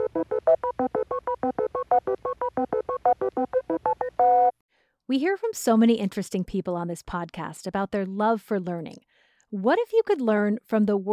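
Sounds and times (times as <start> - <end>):
beep boop sound effect: 0.0 - 4.6
speech: 5.1 - 11.1.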